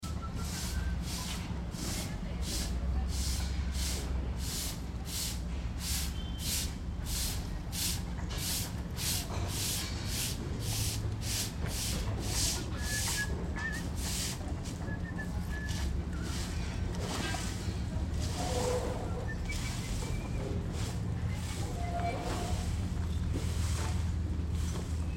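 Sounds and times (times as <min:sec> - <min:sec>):
person whistling: 0:00.0 - 0:01.0, 0:14.9 - 0:15.9
sweeping the streets in Mexico City: 0:00.0 - 0:25.0.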